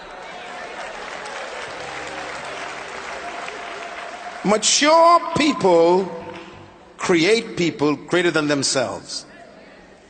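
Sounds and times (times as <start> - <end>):
large audience clapping: 0.0 - 6.7
speech: 4.4 - 6.2, 7.0 - 9.3.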